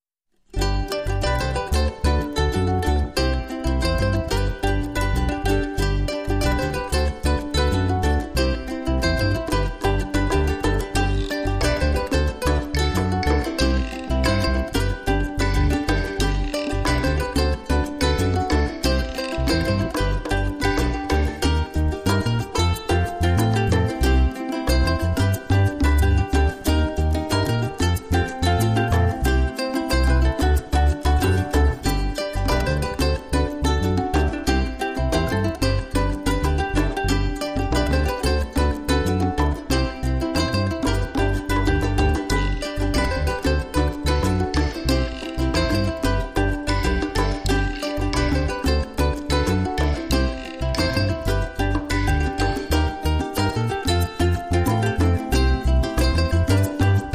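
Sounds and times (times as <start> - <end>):
ukulele: 0.4 - 57.1.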